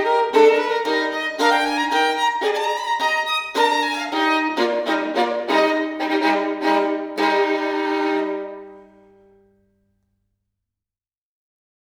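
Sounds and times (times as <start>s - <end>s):
solo violin in E-flat major: 0.0s - 9.4s.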